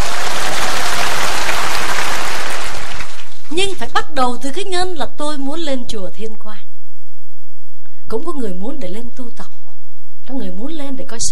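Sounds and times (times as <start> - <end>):
audience applause: 0.0 - 3.5
speech: 4.2 - 6.6, 8.1 - 9.5, 10.3 - 11.3.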